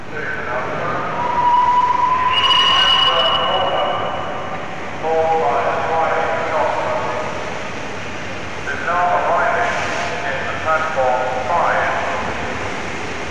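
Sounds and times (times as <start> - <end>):
locomotive arriving at Paddington Station rumbling: 0.0 - 13.2
high tonal whistle-like notes: 1.2 - 4.7.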